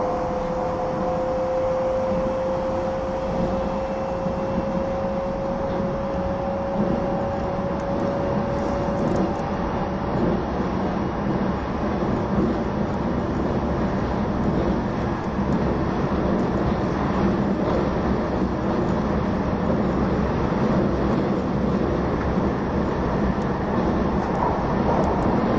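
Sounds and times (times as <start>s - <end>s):
E261 Saphir Odoriko No. 1 train running: 0.0s - 25.5s.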